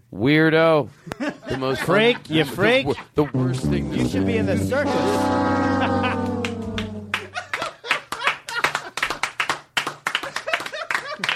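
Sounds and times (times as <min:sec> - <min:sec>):
speech: 0:00.1 - 0:06.2
laughter: 0:01.0 - 0:09.1, 0:10.2 - 0:11.3
audience applause and clapping: 0:05.8 - 0:11.3.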